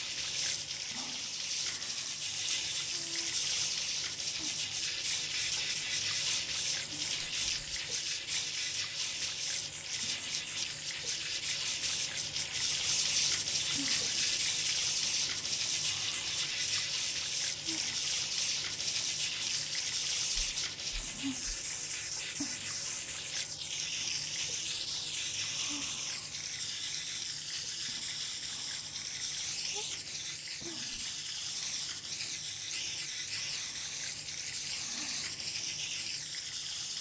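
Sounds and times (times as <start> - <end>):
warm water pouring while rinsing hair: 0.0 - 36.9.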